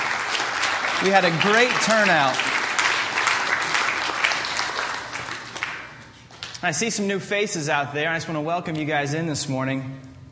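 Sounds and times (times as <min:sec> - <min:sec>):
audience applause: 0:00.0 - 0:06.2
speech: 0:01.0 - 0:02.5, 0:06.6 - 0:10.1.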